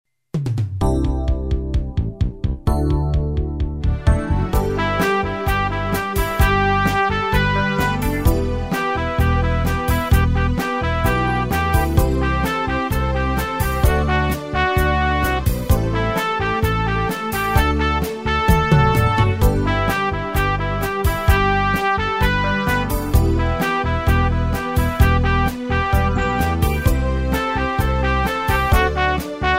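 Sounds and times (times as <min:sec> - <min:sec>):
instrumental melody track: 0:00.6 - 0:29.5.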